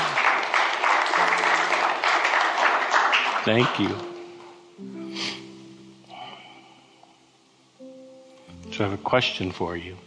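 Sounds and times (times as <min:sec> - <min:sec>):
crowd sustained applause: 0:00.0 - 0:04.1
speech: 0:03.4 - 0:04.1, 0:04.8 - 0:05.3, 0:08.8 - 0:10.0.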